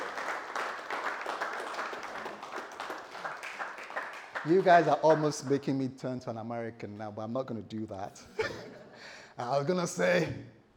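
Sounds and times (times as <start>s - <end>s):
crowd applauding: 0.0s - 5.6s
speech: 4.4s - 8.7s, 9.4s - 10.6s.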